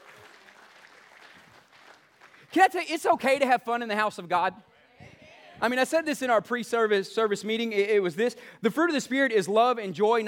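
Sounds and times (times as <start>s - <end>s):
audience hand clapping: 0.0s - 3.0s
speech: 2.5s - 4.7s, 5.6s - 10.2s.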